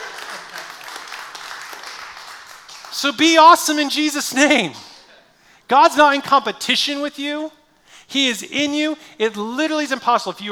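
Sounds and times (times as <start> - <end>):
audience clapping: 0.0 - 3.8
speech: 3.0 - 4.9, 5.7 - 10.5.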